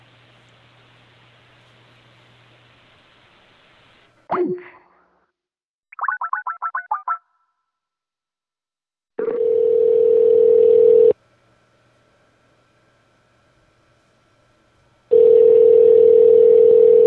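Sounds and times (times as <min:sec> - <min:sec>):
telephone dial tone after disconnected call: 0:09.2 - 0:11.2, 0:15.1 - 0:17.0.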